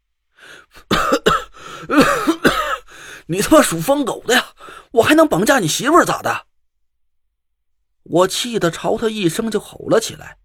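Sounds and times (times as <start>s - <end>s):
person coughing: 0.9s - 3.0s
speech: 3.3s - 6.5s, 8.1s - 10.4s.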